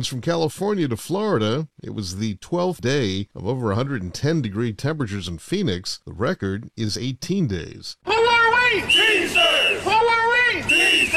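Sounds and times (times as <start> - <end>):
speech: 0.0 - 11.1
picketing union workers chanting in unison: 8.6 - 11.1.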